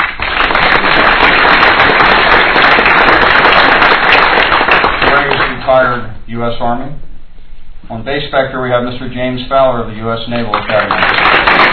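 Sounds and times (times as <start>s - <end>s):
audience round of applause: 0.0s - 5.6s, 10.4s - 11.7s
speech: 6.3s - 7.1s, 7.8s - 11.4s.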